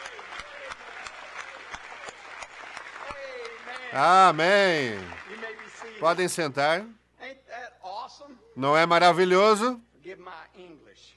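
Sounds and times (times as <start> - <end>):
voice over applause: 0.0 - 6.6
audience clapping: 0.0 - 6.8
speech: 3.9 - 5.4, 6.0 - 7.0, 8.6 - 9.9.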